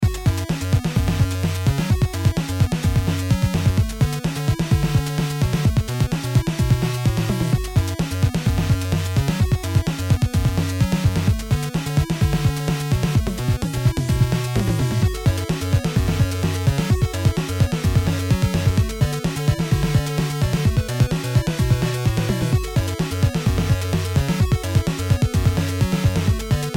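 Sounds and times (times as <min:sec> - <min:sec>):
music beat: 0:00.8 - 0:26.7.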